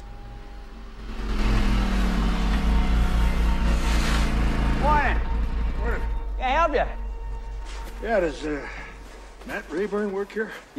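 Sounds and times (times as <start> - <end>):
snowmobile engine rumbling: 0.0 - 6.6
speech: 8.0 - 8.8, 9.4 - 10.7.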